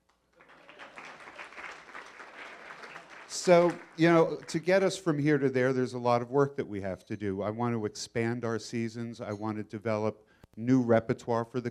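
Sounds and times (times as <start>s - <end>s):
audience applause: 0.3s - 5.1s
speech: 3.3s - 11.6s.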